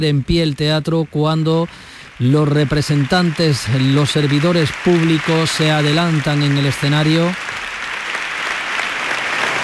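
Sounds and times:
speech: 0:00.0 - 0:07.6
theatre audience applause: 0:02.1 - 0:09.6.

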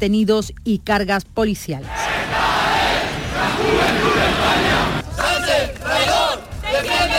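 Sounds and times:
speech: 0:00.0 - 0:02.4
protest crowd chanting at the Fuente de las Batallas in Granada: 0:01.9 - 0:07.1.

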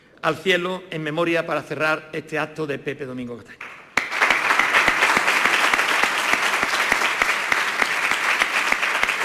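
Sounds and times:
speech: 0:00.2 - 0:03.7
audience applause at an award ceremony: 0:03.6 - 0:09.2.

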